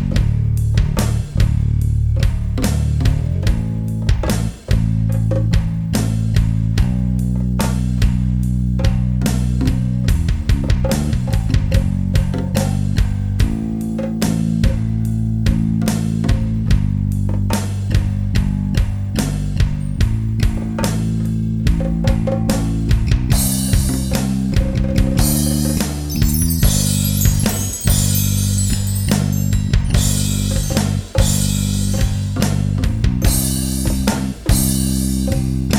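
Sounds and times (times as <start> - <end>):
bass guitar: 0.0 - 35.7.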